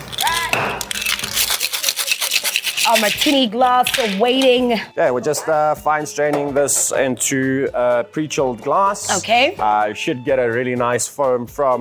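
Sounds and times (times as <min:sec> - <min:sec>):
cocktail shaker shaken with ice: 0:00.0 - 0:04.5
speech: 0:02.9 - 0:11.8.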